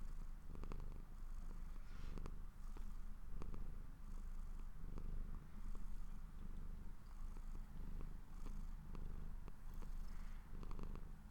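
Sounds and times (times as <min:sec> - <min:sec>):
domestic cat purring while falling asleep: 0:00.0 - 0:11.2.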